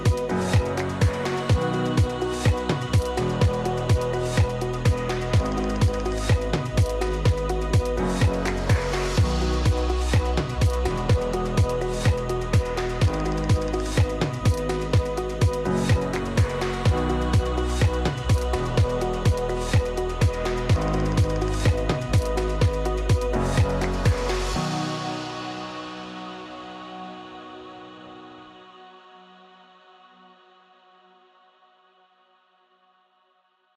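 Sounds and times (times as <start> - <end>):
upbeat corporate music: 0.0 - 27.6.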